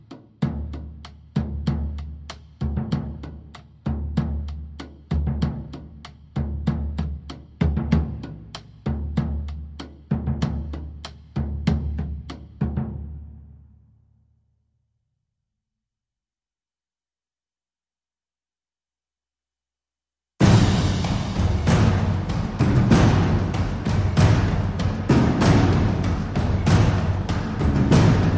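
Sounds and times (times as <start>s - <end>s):
percussion: 0.0s - 13.7s, 20.4s - 28.3s.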